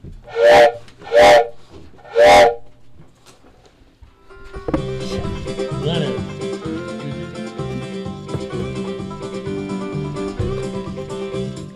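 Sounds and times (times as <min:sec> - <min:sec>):
train whistle: 0:00.3 - 0:02.7.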